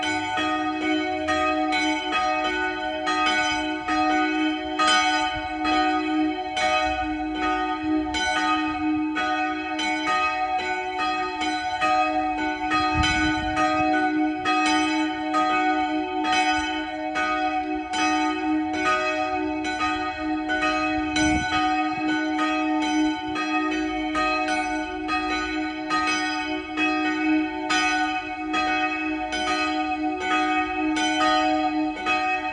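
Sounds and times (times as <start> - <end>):
multi-voice bell peal on D sharp and F sharp: 0.0 - 32.5.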